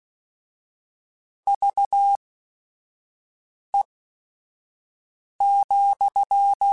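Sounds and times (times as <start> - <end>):
Morse code radio QSOs: 1.5 - 2.2, 5.4 - 6.6.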